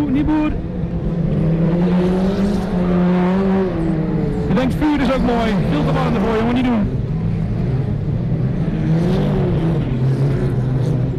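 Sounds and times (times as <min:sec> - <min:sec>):
race car engine revving: 0:00.0 - 0:11.1
speech: 0:00.1 - 0:00.7, 0:04.6 - 0:07.0.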